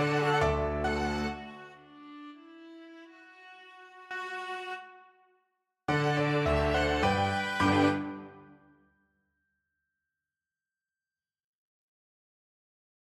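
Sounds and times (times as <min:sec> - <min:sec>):
piano quartet: 0:00.0 - 0:01.7, 0:05.9 - 0:08.4.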